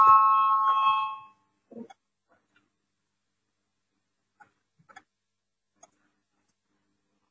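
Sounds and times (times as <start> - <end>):
parliament voting bell: 0.0 - 1.4.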